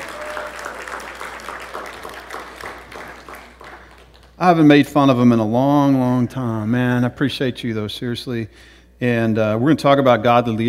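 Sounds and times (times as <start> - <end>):
crowd applauding: 0.0 - 4.4
speech: 4.4 - 10.6.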